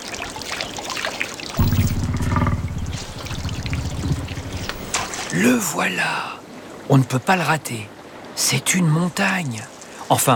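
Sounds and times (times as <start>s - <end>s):
water lapping as woolly mammoth drinks: 0.0s - 5.3s
water splashing and trickling: 0.0s - 7.2s, 9.2s - 10.3s
speech: 5.4s - 10.3s.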